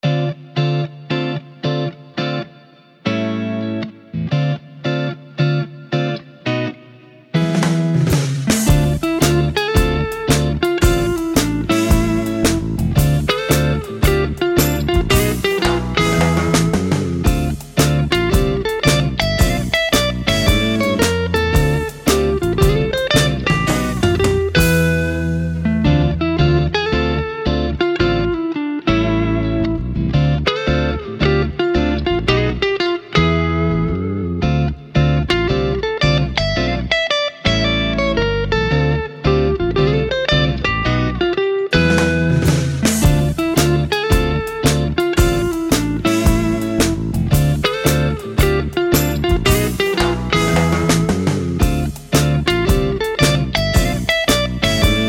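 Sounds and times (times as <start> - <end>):
guitar: 0.0 - 55.0.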